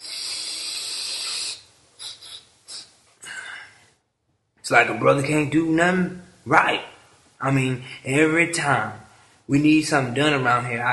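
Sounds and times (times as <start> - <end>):
person snorting a line of drugs: 0.0 - 4.0
speech: 4.7 - 10.9.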